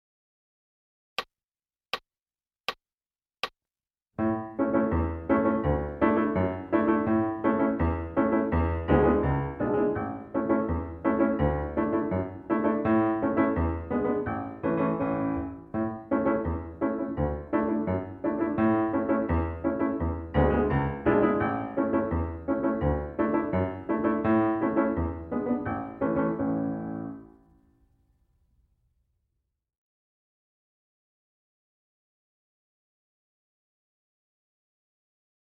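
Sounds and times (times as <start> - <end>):
piano: 4.2 - 28.2.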